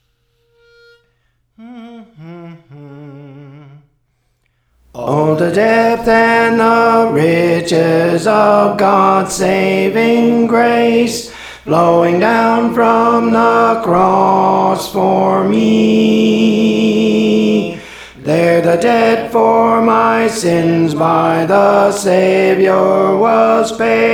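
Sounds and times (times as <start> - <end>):
tenor singing songs: 1.6 - 3.9, 4.8 - 24.1.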